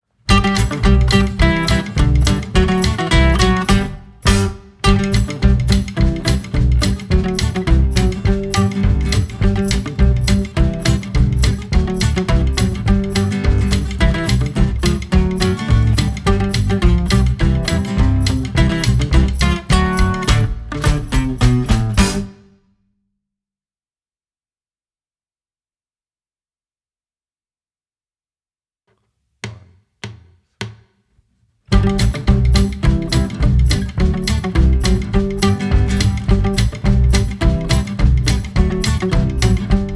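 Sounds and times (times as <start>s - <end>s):
instrumental song: 0.3s - 22.5s, 31.7s - 39.9s.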